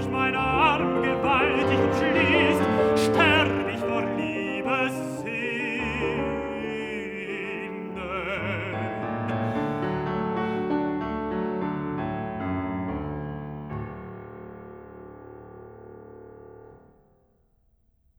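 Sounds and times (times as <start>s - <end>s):
person singing: 0.0s - 10.7s
piano: 0.0s - 17.8s.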